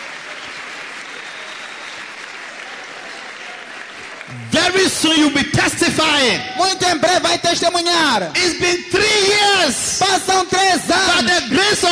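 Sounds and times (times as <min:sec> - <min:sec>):
audience clapping: 0:00.0 - 0:05.4
speech: 0:04.3 - 0:11.9.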